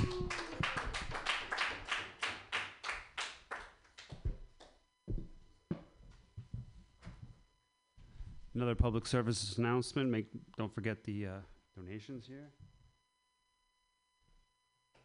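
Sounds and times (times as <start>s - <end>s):
audience clapping: 0.0s - 4.7s
speech: 8.6s - 12.7s.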